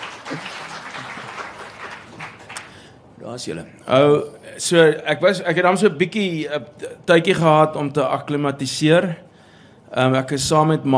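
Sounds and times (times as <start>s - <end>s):
audience applause: 0.0s - 2.9s
speech: 3.3s - 9.3s, 9.9s - 10.9s.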